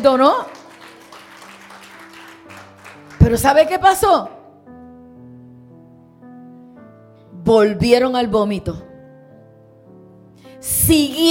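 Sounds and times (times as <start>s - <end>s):
speech: 0.0s - 0.6s, 3.2s - 4.4s, 7.5s - 8.9s, 10.6s - 11.2s
church congregation clapping: 0.0s - 4.0s.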